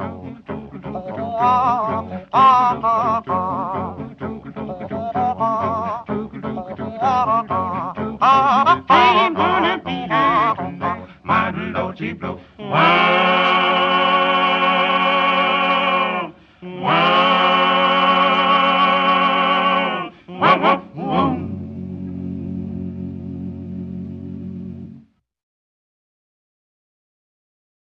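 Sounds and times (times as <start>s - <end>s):
gospel quartet singing: 0.0s - 22.3s.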